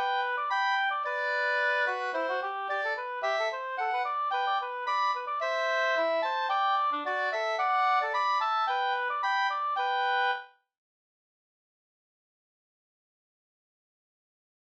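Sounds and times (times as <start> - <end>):
Danish folk dance quadrille in G major: 0.0 - 10.2.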